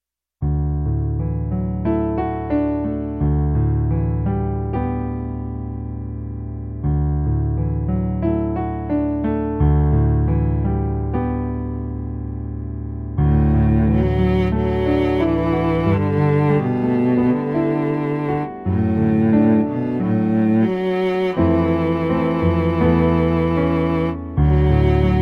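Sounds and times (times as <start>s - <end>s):
cello: 0.8s - 25.2s.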